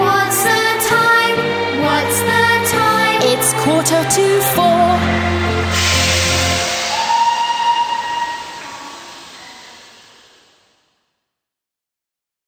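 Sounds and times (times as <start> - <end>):
karaoke singing: 0.0 - 9.7.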